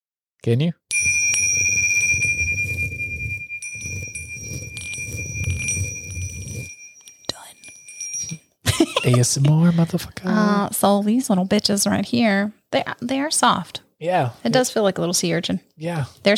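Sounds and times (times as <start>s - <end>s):
speech: 0.4s - 1.2s, 9.0s - 16.3s
bell ding: 0.9s - 9.2s.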